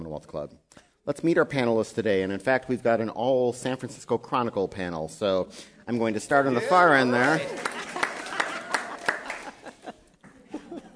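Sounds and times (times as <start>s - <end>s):
speech: 0.1s - 7.9s
audience applause and cheering: 6.5s - 9.6s
laughter and voices: 6.5s - 10.9s
sharp evenly spaced claps: 7.3s - 9.6s.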